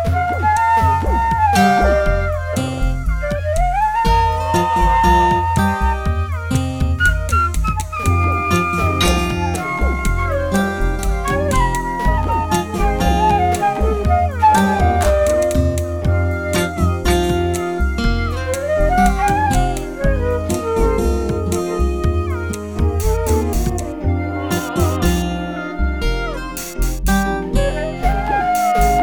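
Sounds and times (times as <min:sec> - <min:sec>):
flute: 0:00.0 - 0:29.0
metronome: 0:06.5 - 0:29.0.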